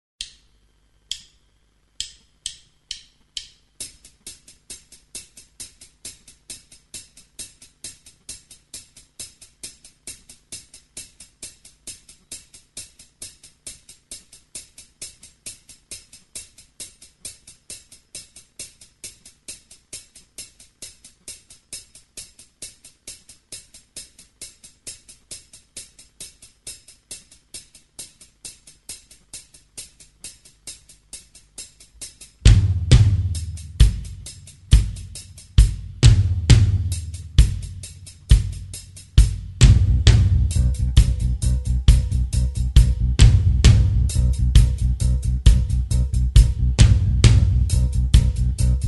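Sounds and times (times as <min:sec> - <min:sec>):
backing track: 0:32.0 - 0:48.8.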